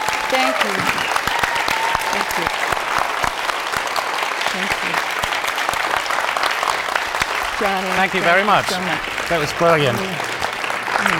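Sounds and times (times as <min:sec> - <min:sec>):
audience round of applause: 0:00.0 - 0:11.1
speech: 0:00.3 - 0:01.2, 0:07.6 - 0:10.3.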